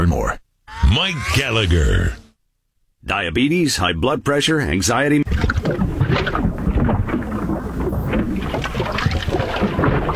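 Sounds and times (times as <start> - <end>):
speech: 0.0 - 2.2, 3.0 - 6.4
clogged drain gurgling: 5.3 - 10.1.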